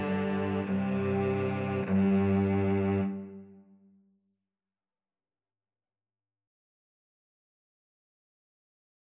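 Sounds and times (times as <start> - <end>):
string trio playing: 0.0 - 3.8.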